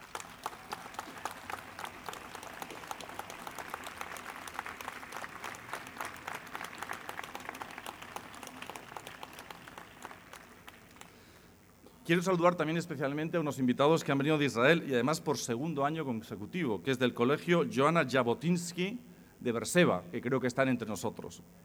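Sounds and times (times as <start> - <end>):
audience applause: 0.0 - 11.4
speech: 12.1 - 21.6.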